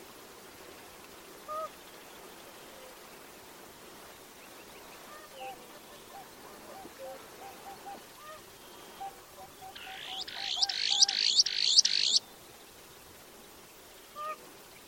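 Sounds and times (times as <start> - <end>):
hiss: 0.0 - 14.8
bird harsh buzzy calls: 9.7 - 12.2.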